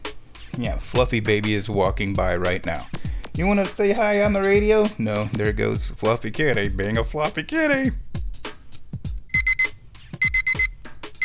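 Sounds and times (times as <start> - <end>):
speech: 0.6 - 8.0
beeper reminder alarm beeping: 9.3 - 11.2.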